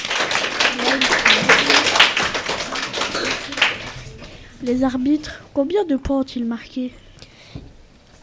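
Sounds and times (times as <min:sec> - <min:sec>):
audience applause: 0:00.0 - 0:04.3
speech: 0:04.6 - 0:07.0.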